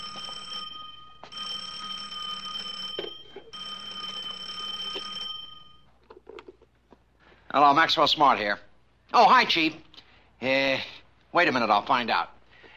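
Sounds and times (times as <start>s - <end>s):
shoe phone ringing: 0.0s - 6.6s
speech: 7.6s - 12.4s.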